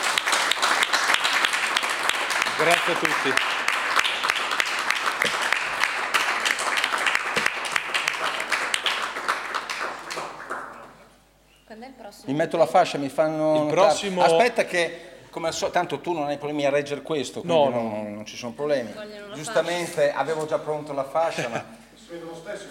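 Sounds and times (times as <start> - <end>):
audience applause: 0.0 - 11.0
speech: 2.6 - 3.6, 12.3 - 22.6.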